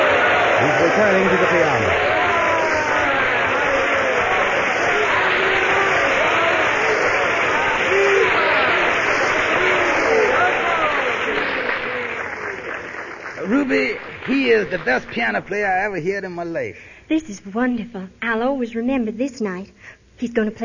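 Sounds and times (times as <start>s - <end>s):
concert audience cheering and shouting: 0.0s - 15.4s
concert audience applause: 0.0s - 16.2s
speech: 0.6s - 2.3s, 14.5s - 20.6s.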